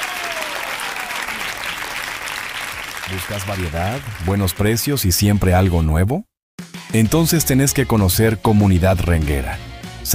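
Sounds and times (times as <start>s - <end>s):
crowd applauding loudly: 0.0s - 5.0s
speech: 3.1s - 6.3s, 6.9s - 10.1s.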